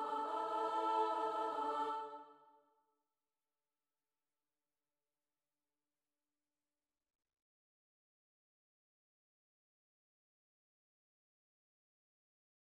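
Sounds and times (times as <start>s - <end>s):
soprano and alto voices: 0.0s - 2.4s.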